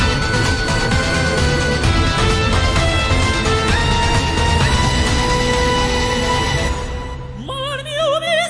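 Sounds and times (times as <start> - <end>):
game background music: 0.0 - 8.3.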